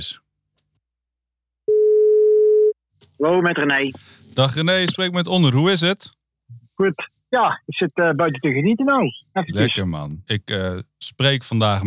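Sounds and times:
speech: 0.0s - 0.2s, 3.2s - 11.8s
telephone ringback tone as a call is placed: 1.7s - 2.8s.

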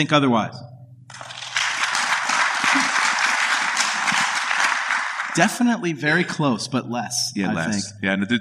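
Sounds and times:
speech: 0.0s - 1.2s, 5.4s - 8.3s
audience clapping as a vote: 1.1s - 5.6s.

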